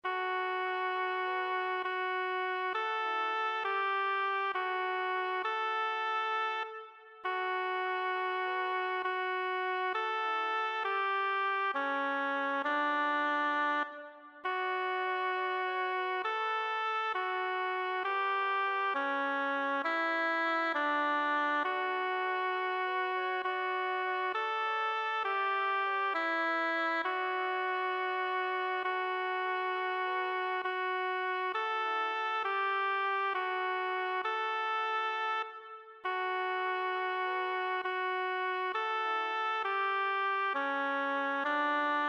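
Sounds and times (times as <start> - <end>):
flute: 0.0 - 42.0.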